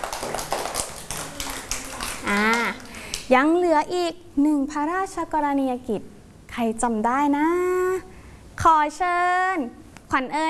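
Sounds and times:
clapping applause: 0.0s - 3.3s
speech: 3.3s - 7.8s, 8.6s - 10.4s.

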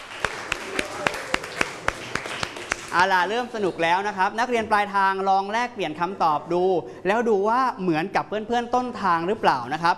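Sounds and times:
classroom clapping for a student's answer: 0.0s - 3.1s
speech: 2.9s - 9.9s.

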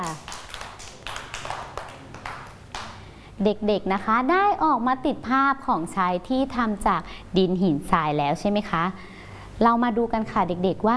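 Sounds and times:
children clapping: 0.0s - 3.0s
speech: 3.4s - 10.9s.

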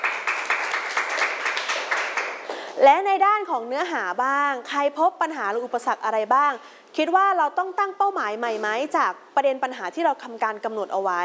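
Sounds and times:
students clapping for a classmate in a classroom: 0.0s - 2.6s
speech: 2.8s - 11.2s.

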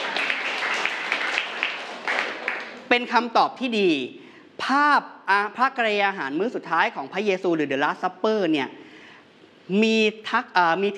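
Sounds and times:
crowd applause: 0.0s - 2.9s
speech: 2.9s - 8.8s, 9.7s - 10.9s.

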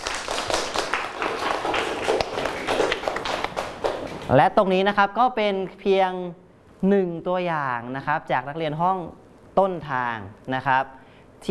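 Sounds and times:
roomful of students applauding in a classroom: 0.0s - 4.3s
speech: 4.3s - 11.5s.

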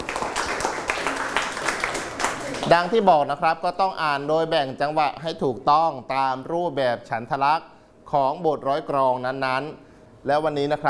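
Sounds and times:
classroom clapping for a classmate: 0.0s - 2.9s
speech: 2.7s - 10.8s.

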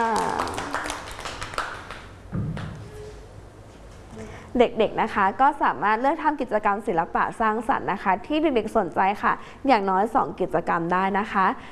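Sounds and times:
children clapping hands: 0.0s - 2.8s
speech: 4.6s - 11.7s.

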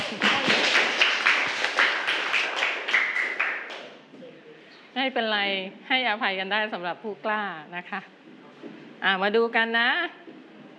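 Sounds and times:
children clapping hands: 0.0s - 4.0s
speech: 5.0s - 8.2s, 9.0s - 10.2s.

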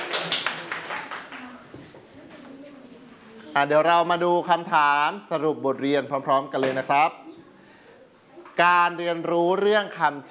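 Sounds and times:
children clapping hands: 0.0s - 1.7s
speech: 3.6s - 7.2s, 8.6s - 10.2s.

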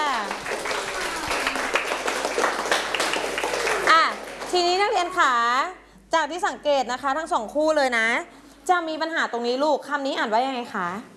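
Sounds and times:
classroom clapping for classmates: 0.0s - 5.0s
speech: 5.0s - 11.1s.

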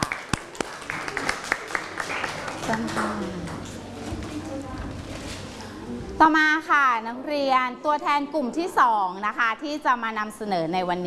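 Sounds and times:
students applauding in a classroom: 0.0s - 3.8s
speech: 2.7s - 3.5s, 6.2s - 11.0s.

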